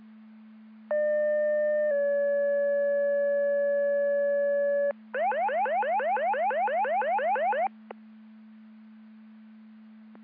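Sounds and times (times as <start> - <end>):
siren: 0.9 - 7.8.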